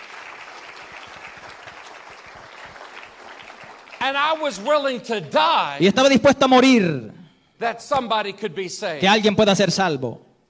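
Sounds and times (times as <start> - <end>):
audience applause: 0.0 - 5.6
speech: 4.0 - 10.2.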